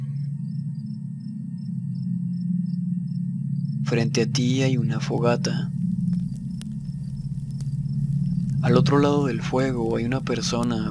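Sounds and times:
crickets chirping in a night forest: 0.0s - 10.9s
steady low rumble in a night forest: 0.0s - 10.9s
speech: 3.9s - 5.8s, 8.6s - 10.9s.

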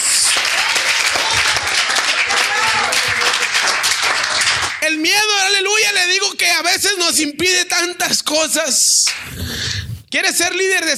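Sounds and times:
audience applauding: 0.0s - 5.0s
speech: 6.2s - 10.9s.

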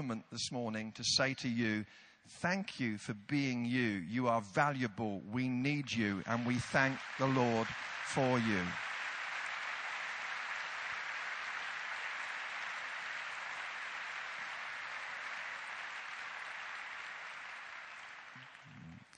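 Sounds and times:
speech: 0.0s - 8.9s
audience applause: 6.2s - 19.1s.

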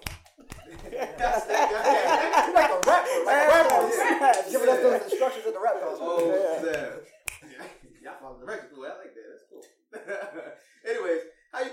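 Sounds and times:
hand claps: 0.0s - 4.9s, 6.0s - 7.5s
laughter: 0.5s - 7.8s, 10.0s - 10.6s
finger snaps: 6.2s - 7.4s.

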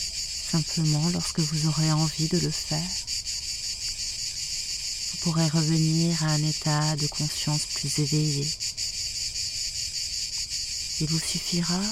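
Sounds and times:
cicadas singing: 0.0s - 11.9s
speech: 0.5s - 3.2s, 5.2s - 8.6s, 11.0s - 11.9s.

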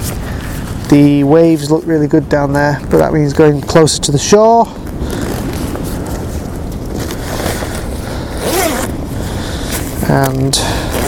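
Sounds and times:
fabric rustling: 0.0s - 11.0s
wind rumbling: 0.0s - 11.0s
speech: 0.9s - 4.8s, 10.1s - 10.9s
coat zipper rasping: 5.0s - 9.1s, 10.8s - 11.0s.

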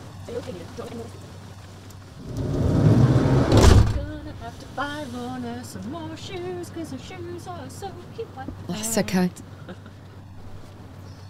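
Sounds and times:
speech: 0.3s - 1.4s, 4.5s - 9.9s
door being closed: 2.2s - 4.2s.

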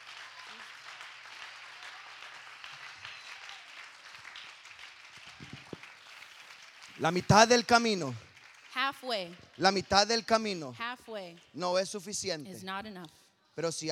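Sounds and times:
audience applause: 0.0s - 10.7s
speech: 7.0s - 8.2s, 8.9s - 13.8s.

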